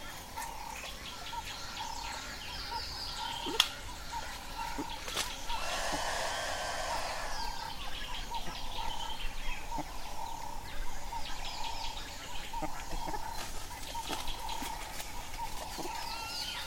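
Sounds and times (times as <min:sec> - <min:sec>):
bird chirps at Kapamba Bushcamp: 0:00.0 - 0:16.6
unidentified creature buzzy call at dawn in the savanna: 0:05.5 - 0:07.8.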